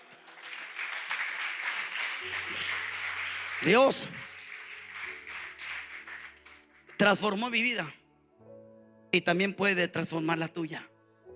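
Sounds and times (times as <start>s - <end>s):
audience clapping hands: 0.0s - 8.0s
speech: 3.6s - 4.2s, 7.0s - 8.0s, 9.2s - 10.9s.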